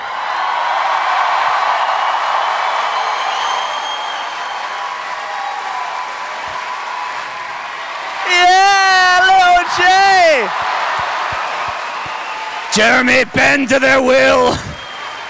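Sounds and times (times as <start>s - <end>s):
large crowd clapping and cheering: 0.0s - 15.2s
speech: 12.8s - 14.7s.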